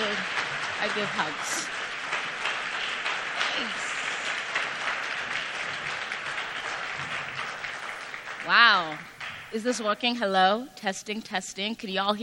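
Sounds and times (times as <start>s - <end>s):
audience applause as speaker takes stage: 0.0s - 9.6s
speech: 0.8s - 1.7s, 3.6s - 3.8s, 8.5s - 12.2s.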